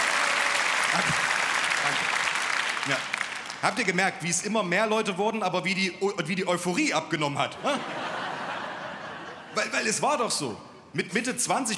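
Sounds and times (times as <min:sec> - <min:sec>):
audience applause: 0:00.0 - 0:04.0
laughter: 0:00.9 - 0:02.1, 0:07.5 - 0:10.0
speech: 0:00.9 - 0:02.2, 0:02.8 - 0:08.0, 0:09.5 - 0:11.7.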